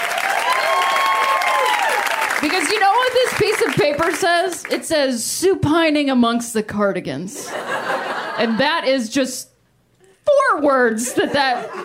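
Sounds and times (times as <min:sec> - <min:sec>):
audience applause: 0:00.0 - 0:04.4
faint high whistle or cheer: 0:00.3 - 0:02.4
speech: 0:02.4 - 0:09.5, 0:10.5 - 0:11.8
laughter: 0:07.4 - 0:08.8, 0:11.0 - 0:11.8.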